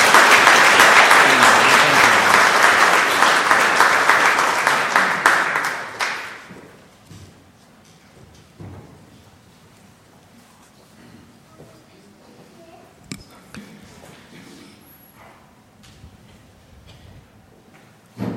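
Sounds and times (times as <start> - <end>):
applause: 0.0 - 6.7.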